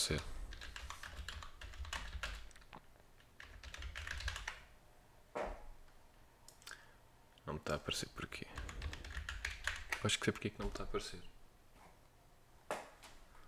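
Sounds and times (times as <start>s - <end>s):
speech: 0.0s - 0.4s, 7.6s - 8.6s, 10.0s - 11.3s
computer keyboard typing a search: 0.5s - 4.7s, 8.6s - 10.1s.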